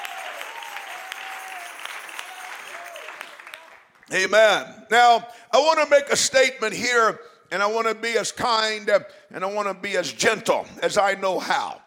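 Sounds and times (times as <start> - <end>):
audience clapping hands in praise: 0.0 - 4.2
speech: 4.1 - 11.8.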